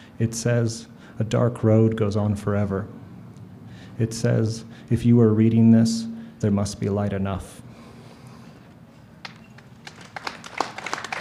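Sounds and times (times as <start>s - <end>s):
speech: 0.2s - 3.0s, 4.0s - 7.6s
audience applause after poem: 9.2s - 11.1s.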